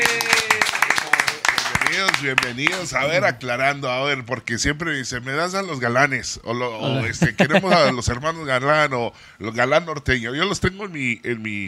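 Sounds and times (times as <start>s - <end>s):
applause: 0.0s - 3.1s
speech: 2.2s - 11.6s
laughter: 6.9s - 8.2s.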